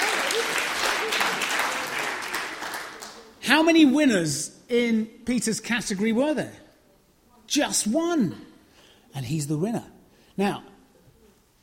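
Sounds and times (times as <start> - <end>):
audience applause: 0.0 - 3.4
speech: 3.5 - 6.6, 7.5 - 8.5, 9.1 - 10.7.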